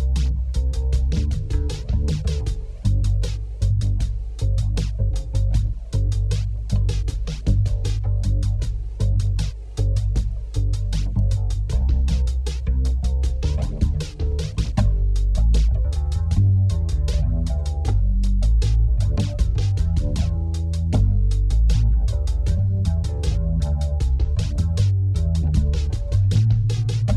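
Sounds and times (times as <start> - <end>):
bass: 0.0 - 27.1
drums: 0.0 - 27.1.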